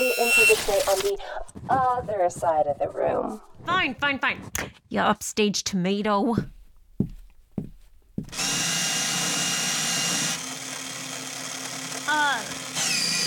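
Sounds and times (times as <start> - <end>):
paper shredder running: 0.0 - 1.1, 8.3 - 13.2
speech: 0.5 - 7.2, 8.2 - 9.0.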